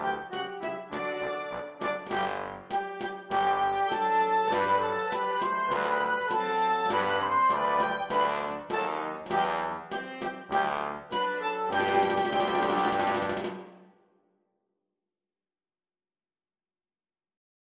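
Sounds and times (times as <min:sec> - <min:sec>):
military oboist corps march: 0:00.0 - 0:13.8.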